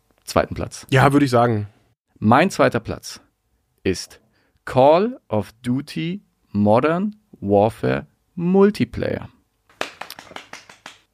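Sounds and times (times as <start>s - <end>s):
speech: 0.4s - 3.2s, 3.8s - 9.4s
person clapping: 9.7s - 11.1s.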